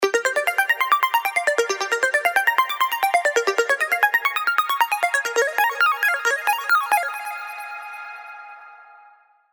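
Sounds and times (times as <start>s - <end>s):
Serum synth arpeggios: 0.0s - 7.6s.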